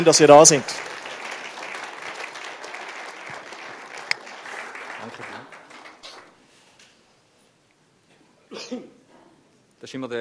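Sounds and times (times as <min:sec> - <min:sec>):
speech: 0:00.0 - 0:00.9, 0:09.9 - 0:10.1
audience applause: 0:00.0 - 0:06.4
sharp loud clap: 0:00.0 - 0:06.4.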